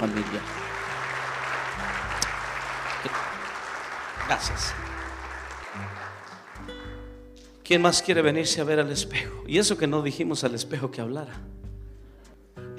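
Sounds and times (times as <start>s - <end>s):
speech: 0.0s - 0.8s, 4.3s - 4.9s, 7.7s - 11.6s
audience applause: 0.0s - 7.2s.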